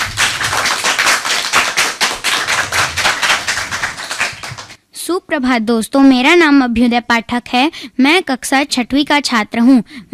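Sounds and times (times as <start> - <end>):
audience applause: 0.0 - 4.8
speech: 5.1 - 10.1.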